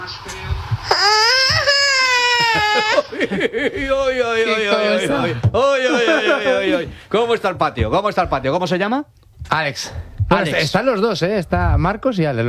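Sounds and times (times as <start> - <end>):
young child's exclamatory vocal sounds: 0.9 - 3.1
laughter: 1.8 - 7.0
speech: 3.2 - 12.4.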